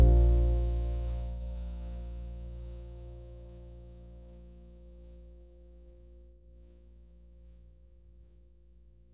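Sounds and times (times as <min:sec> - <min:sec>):
smooth jazz serenade: 0:00.0 - 0:05.3.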